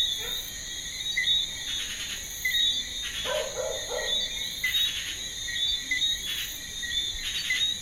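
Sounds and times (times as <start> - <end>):
crickets trilling chorus: 0.0 - 7.8
low barks: 3.2 - 4.3.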